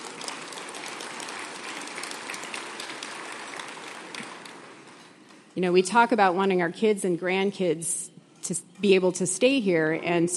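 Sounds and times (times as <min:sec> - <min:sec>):
audience clapping: 0:00.0 - 0:05.2
speech: 0:05.6 - 0:10.3.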